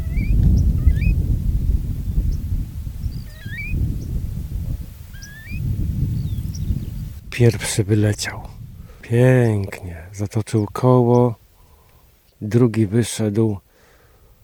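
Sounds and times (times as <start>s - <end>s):
bird squeaks and chirps: 0.0s - 1.2s, 3.0s - 3.8s, 5.1s - 7.0s
loud rushing wind in gusts: 0.0s - 12.3s
speech: 7.4s - 11.4s, 12.4s - 13.6s.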